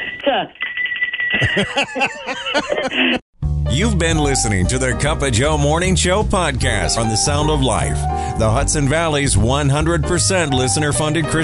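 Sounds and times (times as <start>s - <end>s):
bell ringing: 0.0s - 2.4s
speech: 0.4s - 0.6s, 1.4s - 11.4s
laughter: 1.4s - 3.2s.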